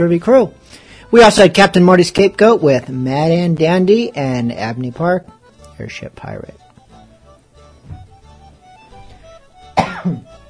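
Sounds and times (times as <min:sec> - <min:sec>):
speech: 0:00.0 - 0:06.6, 0:10.0 - 0:10.4
throat clearing cough: 0:09.8 - 0:10.3.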